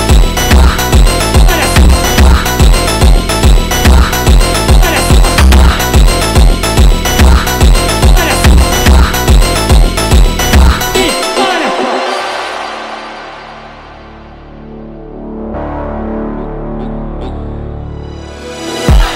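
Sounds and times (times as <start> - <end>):
sped up funk music: 0.0 - 14.5.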